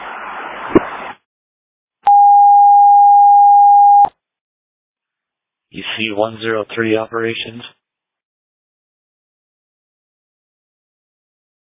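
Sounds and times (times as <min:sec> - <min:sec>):
airport all call alarm tone: 0:02.1 - 0:04.1
speech: 0:06.0 - 0:07.8.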